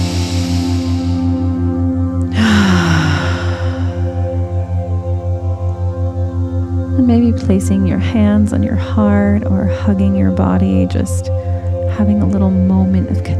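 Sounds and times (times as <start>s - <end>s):
deep breath during a guided breathing exercise: 0.0s - 4.4s
low pulsing drone: 0.0s - 13.3s
speech: 7.4s - 11.4s, 12.0s - 13.3s.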